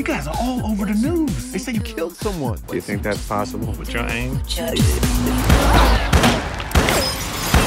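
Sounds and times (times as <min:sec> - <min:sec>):
speech: 0:00.2 - 0:06.5
warning gunshots fired at a man: 0:05.4 - 0:07.6.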